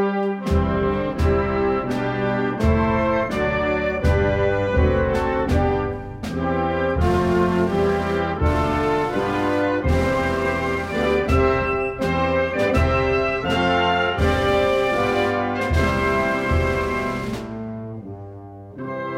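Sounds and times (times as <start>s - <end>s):
anthem music: 0.2s - 19.1s.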